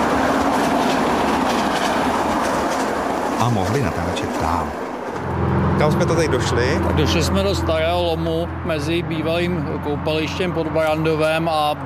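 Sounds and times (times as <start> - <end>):
train passing on a railway line beside a busy road: 0.0 - 11.8
speech: 3.4 - 11.8
faint metallic squeal: 5.2 - 8.8.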